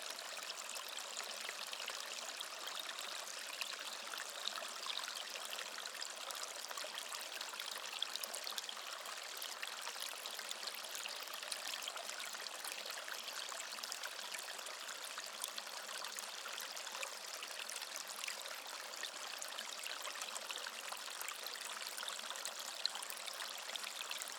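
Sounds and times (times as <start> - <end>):
calm gurgling water stream: 0.0 - 24.3.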